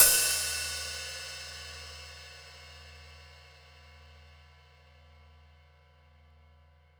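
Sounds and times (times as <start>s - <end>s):
open hi-hat recorded with overhead mic: 0.0s - 3.2s.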